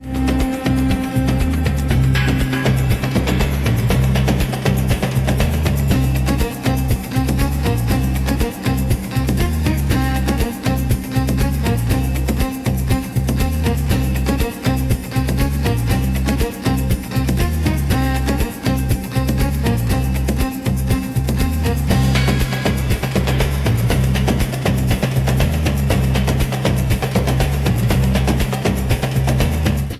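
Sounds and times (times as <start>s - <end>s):
mysterious city music: 0.0s - 29.9s.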